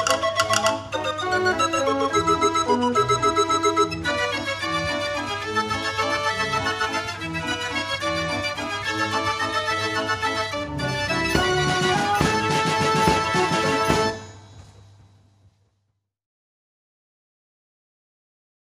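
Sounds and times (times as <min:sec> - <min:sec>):
barrel organ: 0:00.0 - 0:14.3.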